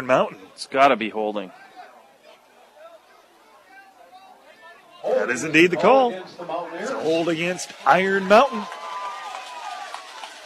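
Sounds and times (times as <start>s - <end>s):
speech: 0.0s - 1.6s, 5.1s - 8.8s
crowd of Patriot fans cheering loudly: 3.6s - 10.4s.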